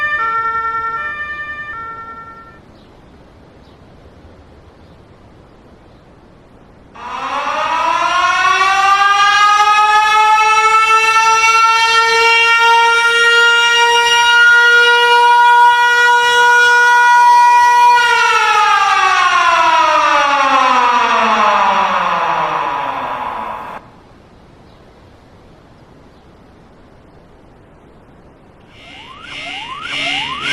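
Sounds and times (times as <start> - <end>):
alarms: 0.0 - 2.6, 7.0 - 23.8, 28.6 - 30.5
sirens: 0.0 - 2.6, 7.0 - 23.9, 28.6 - 30.5.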